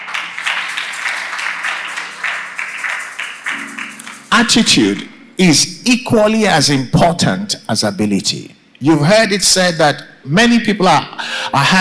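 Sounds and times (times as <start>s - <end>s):
audience clapping: 0.0s - 5.1s
speech: 4.3s - 11.7s.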